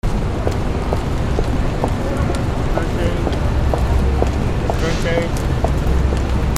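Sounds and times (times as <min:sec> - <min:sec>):
footsteps: 0:00.0 - 0:06.5.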